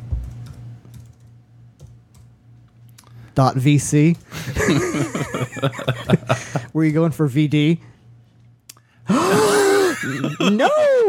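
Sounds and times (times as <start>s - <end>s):
computer keyboard clicks: 0.2s - 2.3s
speech: 3.4s - 8.0s
laughter: 4.4s - 6.7s, 9.1s - 11.0s.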